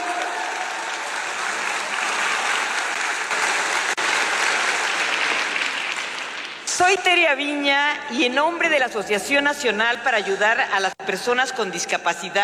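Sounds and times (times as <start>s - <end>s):
audience applause: 0.0s - 6.8s
speech: 6.9s - 12.4s.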